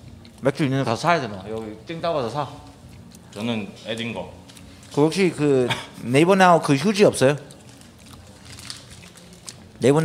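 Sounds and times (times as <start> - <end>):
chewing and lip-smacking while eating: 0.0 - 0.5, 2.6 - 4.9, 7.4 - 9.8
speech: 0.4 - 2.7, 3.3 - 7.5, 9.8 - 10.0.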